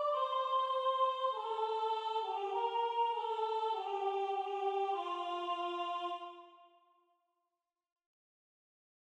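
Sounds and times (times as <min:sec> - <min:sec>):
soprano singing: 0:00.0 - 0:06.4.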